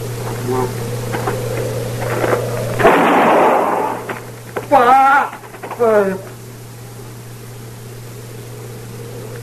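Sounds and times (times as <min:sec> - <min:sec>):
low hum: 0:00.0 - 0:09.4
speech: 0:00.5 - 0:01.3, 0:05.8 - 0:06.3
gunshot in a radio drama: 0:02.8 - 0:04.2.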